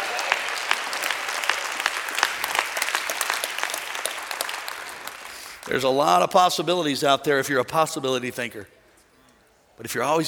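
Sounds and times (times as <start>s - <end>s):
audience clapping: 0.0s - 6.1s
speech: 5.7s - 8.8s, 9.8s - 10.2s.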